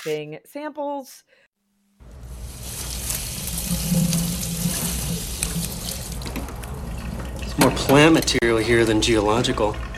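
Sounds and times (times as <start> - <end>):
speech: 0.0 - 2.2, 7.6 - 9.9
running water from a sink tap rinsing a head: 2.0 - 9.9.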